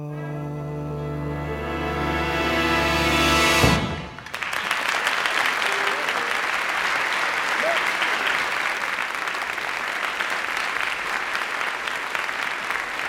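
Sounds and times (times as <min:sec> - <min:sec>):
band closing chord: 0:00.1 - 0:04.2
crowd clapping: 0:04.0 - 0:13.0.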